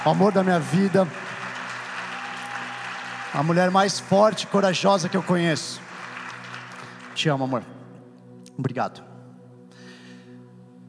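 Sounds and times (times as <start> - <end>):
speech: 0.0 - 1.3, 3.3 - 5.9, 7.2 - 7.8, 8.6 - 9.1
audience applause: 0.0 - 7.6.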